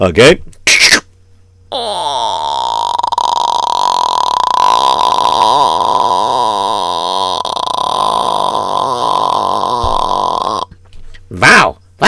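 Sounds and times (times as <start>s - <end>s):
speech: 0.0s - 0.8s
voice imitating a creaking door opening: 1.7s - 10.7s.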